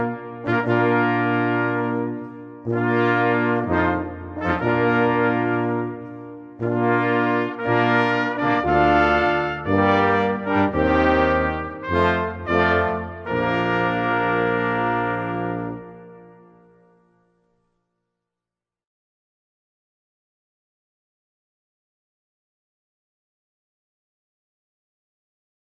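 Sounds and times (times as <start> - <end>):
brass ensemble: 0.0 - 17.6.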